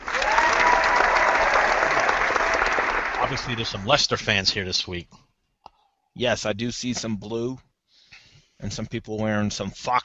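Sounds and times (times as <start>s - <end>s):
crowd applauding at a live show: 0.0s - 3.8s
speech: 3.3s - 5.3s, 6.2s - 7.7s, 8.6s - 10.0s.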